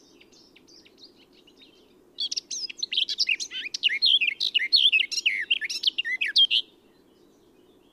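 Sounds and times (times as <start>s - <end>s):
Eurasian blackcap song of whistles and twitters: 0.0s - 6.7s.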